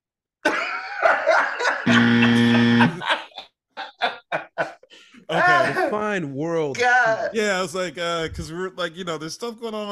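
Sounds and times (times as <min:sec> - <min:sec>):
laughter: 0:00.4 - 0:05.0
voice imitating a game-show buzzer: 0:01.9 - 0:03.0
speech: 0:06.2 - 0:09.9.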